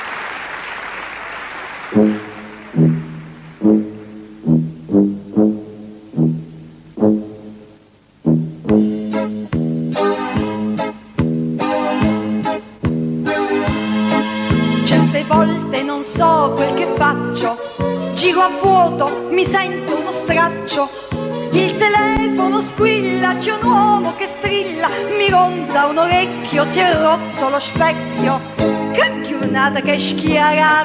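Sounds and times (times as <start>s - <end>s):
funny Italian song from the Sanremo festival: 0.7s - 30.8s
speech: 1.9s - 2.2s.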